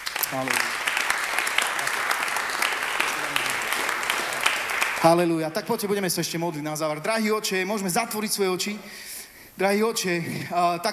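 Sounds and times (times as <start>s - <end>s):
audience applause: 0.0s - 5.3s
speech: 0.3s - 0.8s, 5.0s - 10.9s.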